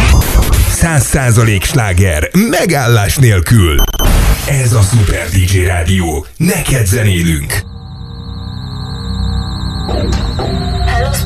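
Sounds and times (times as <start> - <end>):
speech: 0.8 - 7.7, 9.9 - 11.2
1201 program alarm as a spacecraft mission effect: 3.8 - 4.2, 6.4 - 11.2
low droning bed of music: 7.6 - 11.2.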